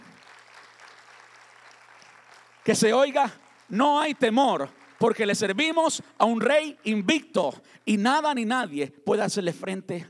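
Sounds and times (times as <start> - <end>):
audience applause: 0.0 - 6.9
speech: 2.6 - 10.0.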